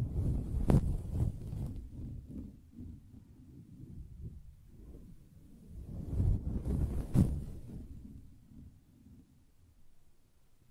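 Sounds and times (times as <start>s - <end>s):
soft tapping and scratching on a fabric surface: 0.2s - 2.5s, 6.1s - 7.9s.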